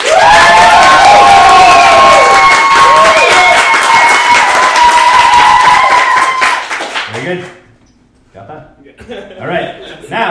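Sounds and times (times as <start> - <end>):
audience applause and cheering: 0.0 - 7.2.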